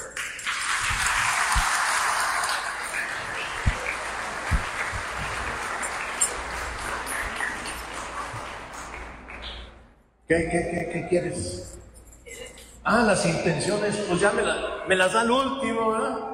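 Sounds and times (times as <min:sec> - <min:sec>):
audience applause: 0:00.0 - 0:09.9
speech: 0:10.3 - 0:11.8, 0:12.9 - 0:16.3.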